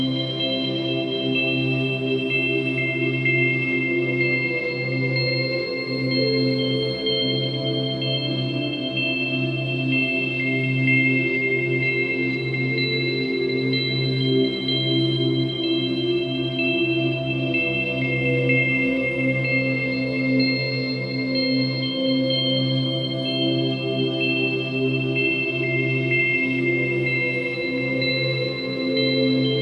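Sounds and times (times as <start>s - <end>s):
tranquil dreamy light warm twinkly melody: 0.0s - 29.6s.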